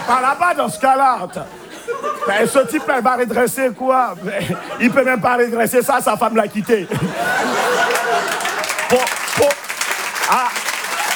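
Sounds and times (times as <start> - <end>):
laughter: 0.0 - 11.1
speech: 0.1 - 9.6
audience applause: 7.3 - 11.1.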